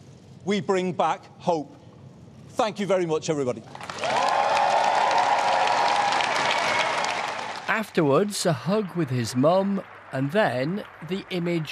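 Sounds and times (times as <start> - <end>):
speech: 0.4 - 1.8, 2.6 - 4.2, 7.7 - 11.7
applause for arriving Prime Minister at Number 10: 3.7 - 11.7.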